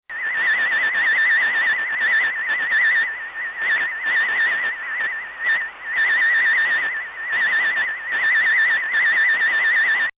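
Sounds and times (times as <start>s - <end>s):
unknown space signal: 0.1s - 10.1s.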